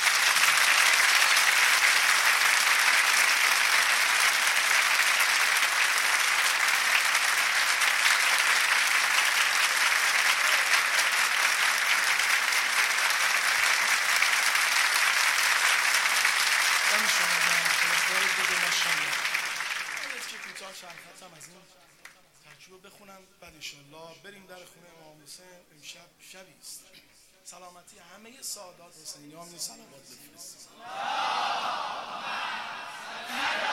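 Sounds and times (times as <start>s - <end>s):
audience applause at a religious gathering: 0.0s - 22.2s, 31.3s - 33.7s
speech: 28.6s - 31.1s.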